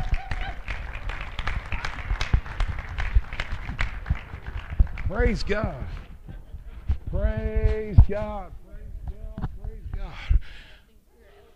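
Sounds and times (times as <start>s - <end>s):
audience applause: 0.0s - 6.1s
speech: 5.1s - 6.0s, 7.2s - 8.6s.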